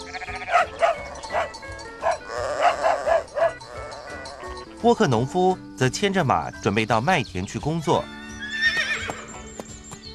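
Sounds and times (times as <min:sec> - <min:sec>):
sheep bleating: 0:00.0 - 0:00.9, 0:02.1 - 0:04.6
sheepdog barking: 0:00.5 - 0:03.6
speech: 0:04.8 - 0:08.2.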